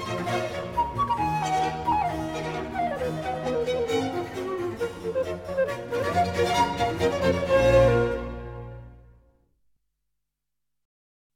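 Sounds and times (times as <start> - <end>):
transverse flute: 0.0 - 8.7.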